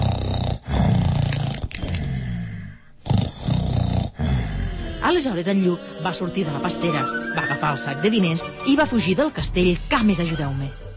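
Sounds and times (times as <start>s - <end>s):
Giant's loud snoring: 0.0s - 5.1s
speech: 5.1s - 10.8s.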